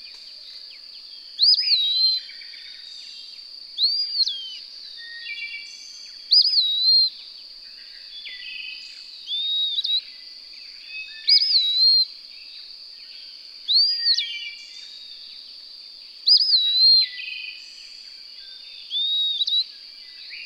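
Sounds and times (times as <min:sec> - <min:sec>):
bird whistled song: 0:01.4 - 0:02.5, 0:03.8 - 0:07.2, 0:08.1 - 0:10.2, 0:10.8 - 0:12.1, 0:13.7 - 0:15.2, 0:16.2 - 0:17.8, 0:18.4 - 0:20.4.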